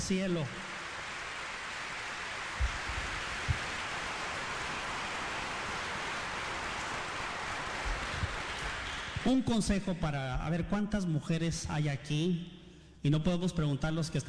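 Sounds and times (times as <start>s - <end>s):
speech: 0.0s - 0.7s, 9.2s - 14.2s
crowd applauding: 0.0s - 9.5s.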